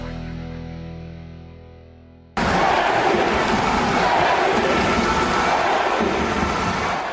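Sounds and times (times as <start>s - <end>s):
arena crowd chanting in the Tipsport Arena in Prague: 2.4s - 7.1s.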